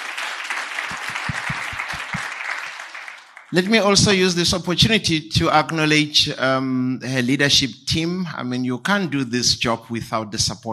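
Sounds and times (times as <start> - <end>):
crowd applauding: 0.0 - 3.9
speech: 3.5 - 10.7.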